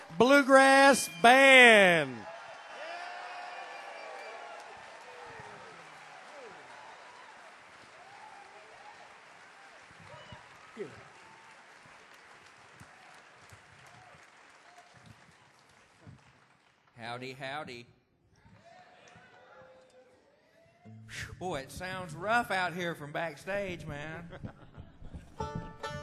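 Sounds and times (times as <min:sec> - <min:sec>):
people whooping: 0:00.0 - 0:11.6
audience applause at a theater welcoming a bluegrass band: 0:00.0 - 0:17.4
speech: 0:00.1 - 0:02.3, 0:17.2 - 0:18.0, 0:21.1 - 0:24.6.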